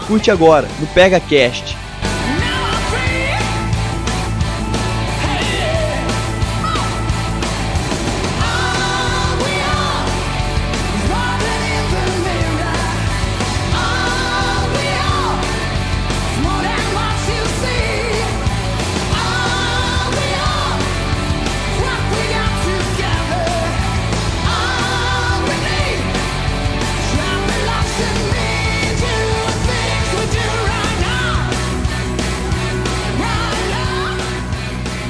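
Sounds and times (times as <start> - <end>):
heavy metal music: 0.0 - 35.0
speech: 0.1 - 1.8.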